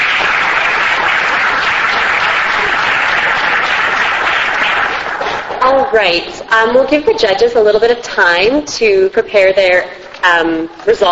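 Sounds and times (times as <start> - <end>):
audience applause: 0.0 - 5.6
speech: 5.7 - 11.1.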